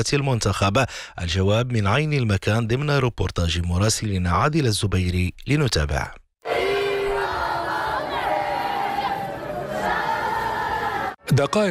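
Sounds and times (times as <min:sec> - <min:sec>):
speech: 0:00.0 - 0:06.2, 0:11.3 - 0:11.6
football crowd chanting outside a stadium in Rabat: 0:06.4 - 0:11.6.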